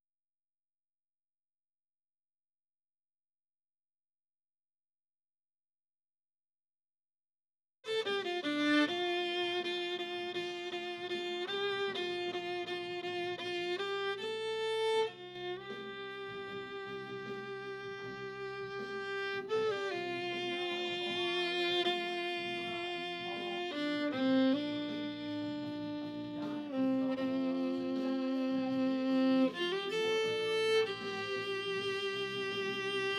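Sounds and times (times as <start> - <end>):
violin: 7.9 - 33.1.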